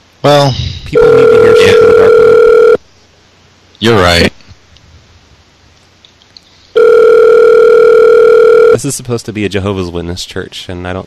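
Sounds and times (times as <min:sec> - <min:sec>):
speech: 0:00.2 - 0:02.5, 0:03.8 - 0:04.4, 0:08.8 - 0:11.0
telephone line tone: 0:01.0 - 0:02.8, 0:06.8 - 0:08.8.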